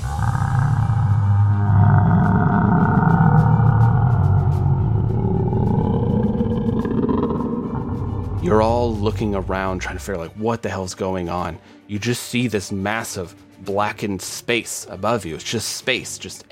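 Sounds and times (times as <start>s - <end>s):
monstrous bellow echoing from above: 0.0s - 10.2s
speech: 8.5s - 16.4s.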